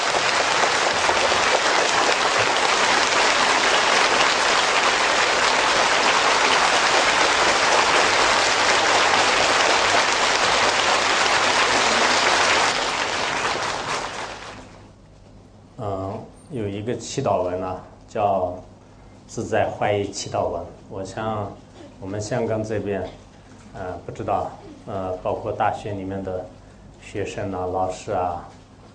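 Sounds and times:
audience applause: 0.0s - 14.8s
speech: 17.0s - 18.7s, 19.3s - 28.6s.

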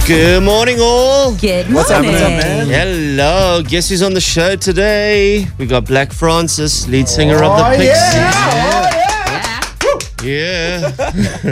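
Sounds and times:
speech: 0.1s - 8.8s, 10.2s - 11.5s
laughter: 1.6s - 3.0s, 7.0s - 11.5s
people whooping and cheering: 7.1s - 10.2s
fake applause: 7.2s - 10.4s.

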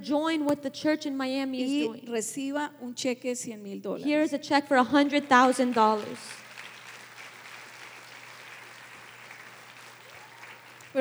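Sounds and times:
speech: 0.0s - 6.4s
audience clapping: 4.9s - 10.9s.

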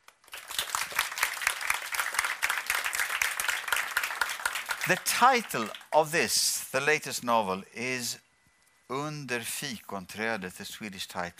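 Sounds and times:
audience applause: 0.0s - 5.9s
speech: 4.9s - 8.3s, 8.9s - 11.3s.

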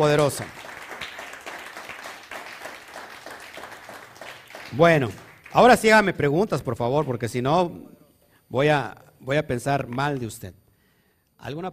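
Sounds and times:
speech: 0.0s - 0.6s, 4.7s - 10.6s, 11.4s - 11.7s
audience applause: 0.2s - 5.8s.

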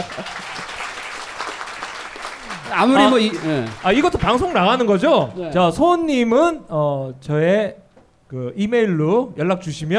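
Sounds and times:
audience applause: 0.0s - 4.9s
speech: 2.7s - 9.9s.

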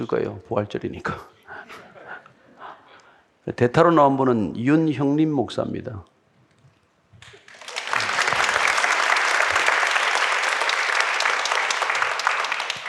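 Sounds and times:
speech: 0.0s - 1.8s, 3.4s - 6.1s
audience applause: 7.3s - 12.8s.

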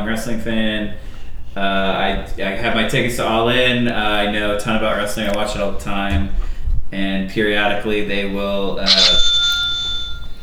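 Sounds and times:
speech: 0.0s - 9.3s
sound machine bell-like tone: 8.9s - 10.4s.

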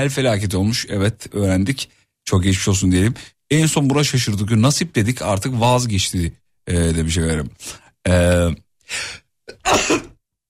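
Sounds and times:
speech: 0.0s - 10.1s
person sneezing on air during a live broadcast: 9.5s - 10.2s.

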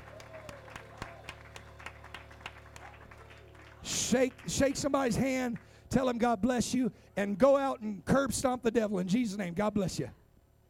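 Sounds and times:
audience clapping hands in praise: 0.0s - 5.8s
low room hum: 0.0s - 10.6s
speech: 3.8s - 10.2s.

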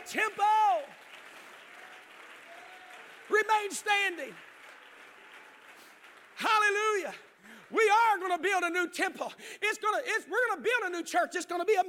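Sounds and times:
audience clapping hands: 0.0s - 8.9s
speech: 0.1s - 0.6s, 3.5s - 4.5s, 6.6s - 11.8s.

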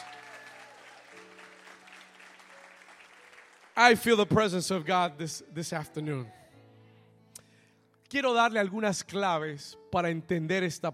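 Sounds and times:
audience applauding: 0.0s - 4.3s
speech: 3.8s - 6.4s, 8.1s - 10.9s.

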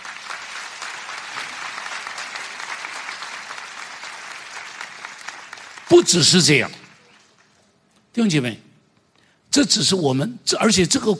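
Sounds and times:
crowd applauding: 0.0s - 7.7s
speech: 5.9s - 6.8s, 8.2s - 8.7s, 9.5s - 11.1s.

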